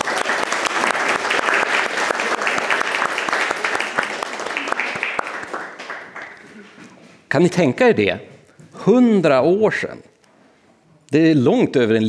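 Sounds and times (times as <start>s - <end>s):
audience applause: 0.0s - 7.1s
speech: 7.3s - 10.1s, 11.1s - 12.0s.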